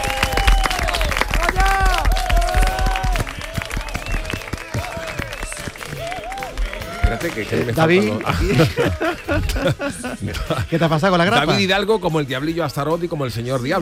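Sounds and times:
audience applause: 0:00.0 - 0:09.3
laughter: 0:04.6 - 0:11.6
speech: 0:07.2 - 0:13.7.

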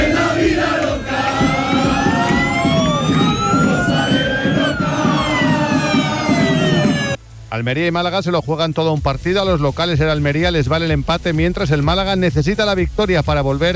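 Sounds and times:
hundreds of Málaga football fans cheering departing team bus: 0:00.0 - 0:07.2
speech: 0:07.6 - 0:13.7.

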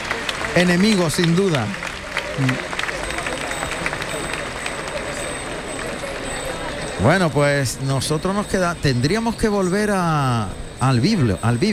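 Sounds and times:
bullring audience clapping: 0:00.0 - 0:07.2
speech: 0:00.5 - 0:01.8, 0:02.4 - 0:02.7, 0:07.0 - 0:11.7.

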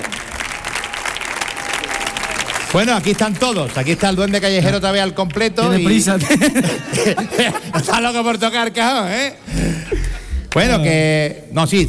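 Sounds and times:
crowd applauding: 0:00.0 - 0:06.1
speech: 0:02.7 - 0:09.7, 0:10.5 - 0:11.8
laughter: 0:05.9 - 0:08.4.

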